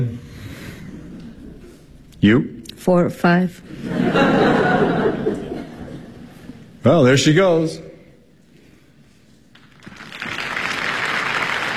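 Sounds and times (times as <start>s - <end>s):
laughter: 0.9s - 1.8s, 3.7s - 6.6s
speech: 2.2s - 5.4s, 6.8s - 7.9s
audience applauding an actor's entrance: 9.6s - 11.7s.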